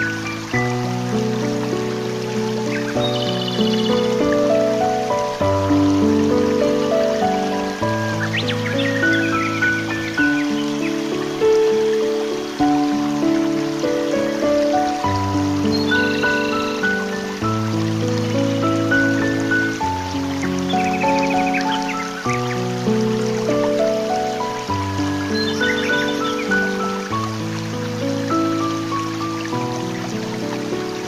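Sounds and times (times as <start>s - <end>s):
piano: 0.0s - 31.0s
bird: 2.3s - 4.6s, 6.9s - 11.5s, 19.2s - 22.6s, 23.5s - 27.1s.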